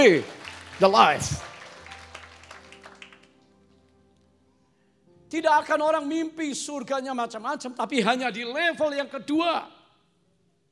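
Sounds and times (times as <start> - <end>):
speech: 0.0 - 1.5, 5.3 - 9.8
audience applause: 0.0 - 3.5.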